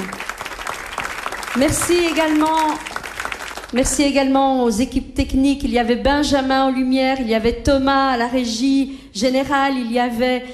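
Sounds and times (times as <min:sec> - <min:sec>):
audience applause: 0:00.0 - 0:03.8
speech: 0:01.6 - 0:02.9, 0:03.7 - 0:10.5.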